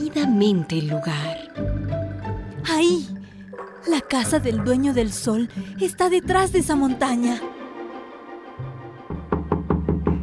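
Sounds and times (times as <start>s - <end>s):
speech: 0.1s - 1.7s, 2.6s - 3.2s, 3.8s - 7.6s
knocking on a door: 9.2s - 10.2s.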